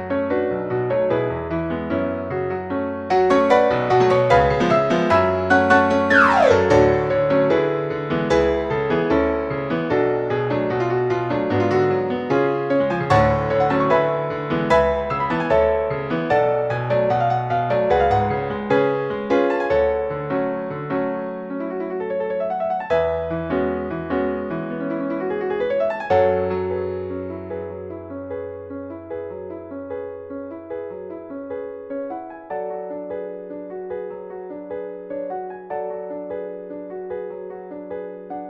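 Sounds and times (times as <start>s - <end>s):
piano piece: 0.0s - 38.4s.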